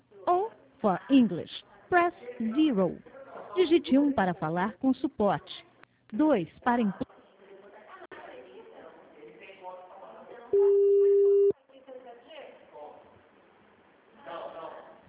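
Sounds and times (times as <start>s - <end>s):
speech: 0.8s - 7.1s
telephone busy tone after a dropped call: 10.6s - 11.5s.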